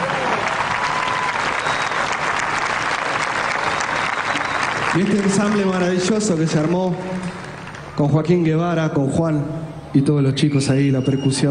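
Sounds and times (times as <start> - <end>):
audience applause: 0.0 - 8.1
speech: 5.0 - 7.4, 8.0 - 11.4.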